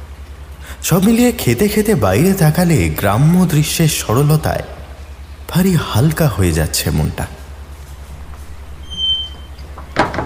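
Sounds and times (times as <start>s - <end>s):
speech: 0.8s - 4.8s, 5.5s - 7.4s
restaurant door opening with a thin high squeak: 8.2s - 10.2s.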